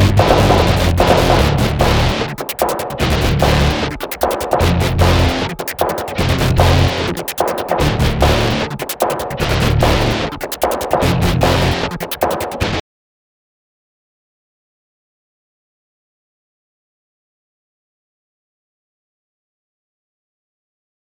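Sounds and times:
ambient music loop: 0.0s - 12.8s.

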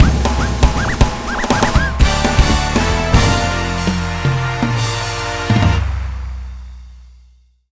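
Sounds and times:
game clear jingle: 0.0s - 5.8s.

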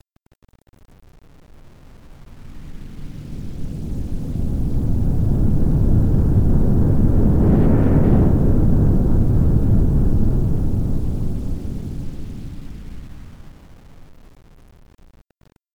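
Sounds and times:
long whoosh: 2.4s - 13.5s.

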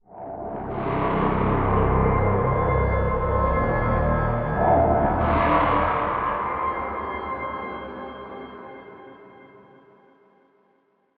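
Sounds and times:
quick tension stinger: 0.1s - 8.7s.

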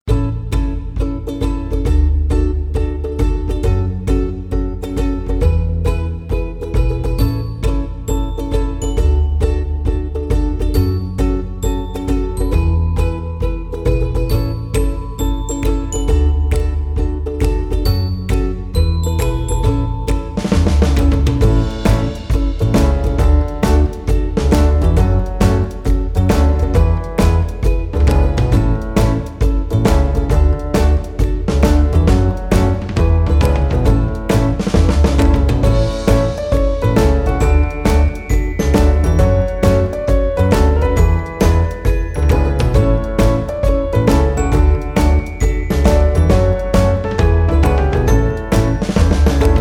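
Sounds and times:
uplifting summer ukulele menu music: 0.0s - 49.5s.

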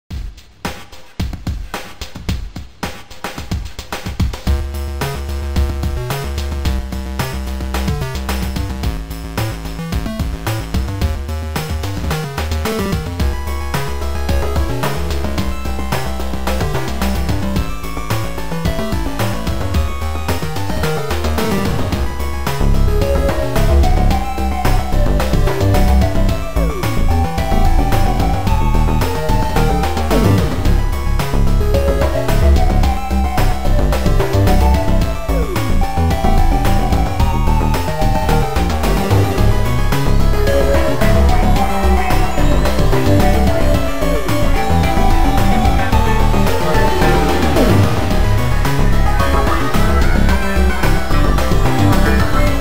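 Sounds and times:
8-bit chiptune: 4.5s - 52.5s.

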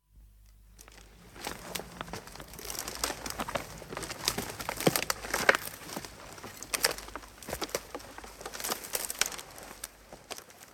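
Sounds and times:
crawling through undergrowth: 0.9s - 10.7s.

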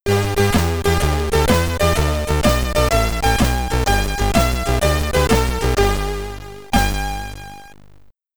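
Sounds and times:
SID chip game over jingle: 0.1s - 7.7s.

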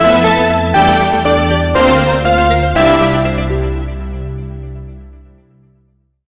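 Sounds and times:
game over jingle: 0.0s - 4.4s.

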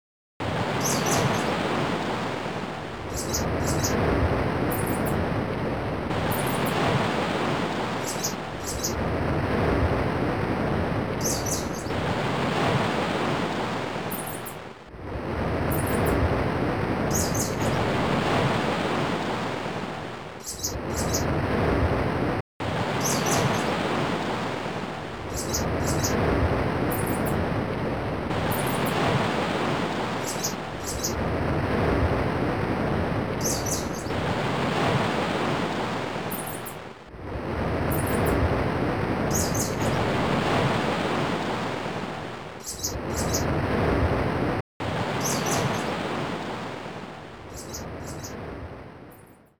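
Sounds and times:
surf: 0.4s - 48.7s
birds: 0.6s - 5.3s, 6.1s - 9.2s, 11.0s - 14.7s, 15.6s - 16.3s, 17.0s - 19.6s, 20.4s - 21.4s, 22.8s - 27.5s, 28.3s - 31.4s, 33.3s - 36.9s, 37.9s - 38.5s, 39.2s - 43.6s, 45.0s - 46.7s, 47.4s - 48.4s.

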